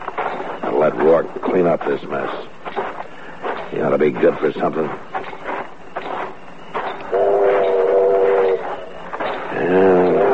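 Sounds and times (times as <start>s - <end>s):
train pulling in, rumbling and hissing: 0.0s - 10.3s
speech: 0.8s - 2.6s, 3.7s - 5.1s
train whistle blasts: 7.1s - 8.7s.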